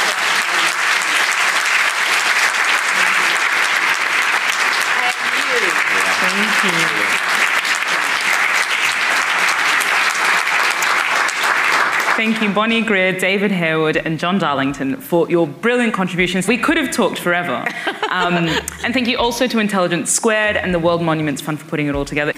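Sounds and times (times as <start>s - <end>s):
audience applause: 0.0s - 12.6s
laughter: 5.0s - 8.2s, 17.5s - 19.4s
speech: 12.2s - 22.3s.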